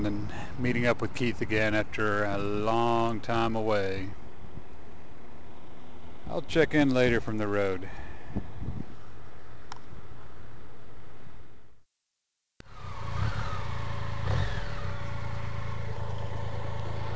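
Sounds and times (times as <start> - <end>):
speech: 0.0 - 4.2, 6.3 - 8.5
BMW K75S motorcycle engine riding on a dirt road: 12.6 - 17.1.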